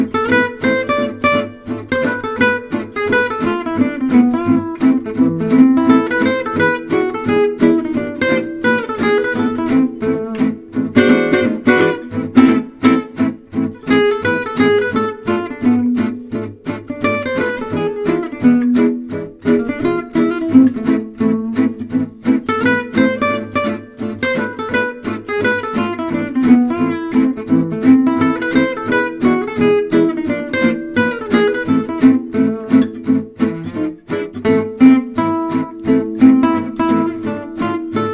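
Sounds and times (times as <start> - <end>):
manouche gypsy jazz melody in A minor: 0.0 - 38.1.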